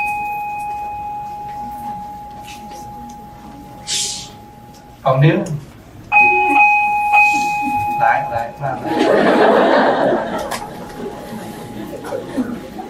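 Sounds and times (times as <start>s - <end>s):
communal house bell ringing: 0.0s - 5.1s, 6.1s - 10.3s
people chattering: 0.0s - 5.5s, 6.1s - 12.8s
speech: 5.0s - 5.6s, 8.3s - 10.5s
laughter: 8.7s - 12.8s.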